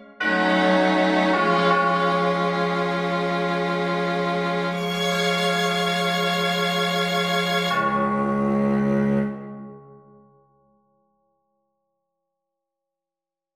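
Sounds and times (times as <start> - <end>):
piece for oboe and strings: 0.0 - 9.8.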